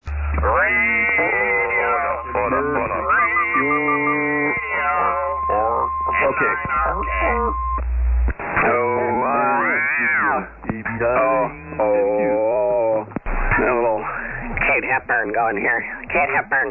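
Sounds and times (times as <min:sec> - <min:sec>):
SSB radio net tune-up: 0:00.1 - 0:16.6.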